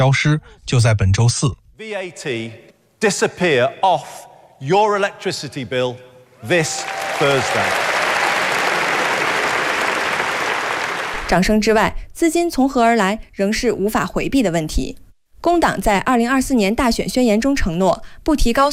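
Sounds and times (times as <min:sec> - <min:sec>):
speech: 0:00.0 - 0:07.9, 0:11.3 - 0:18.7
audience applause: 0:06.4 - 0:11.3.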